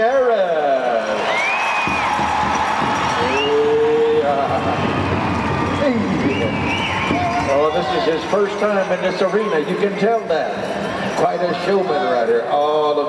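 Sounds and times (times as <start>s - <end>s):
arena crowd applause: 0.7s - 12.3s
speech: 7.1s - 13.0s.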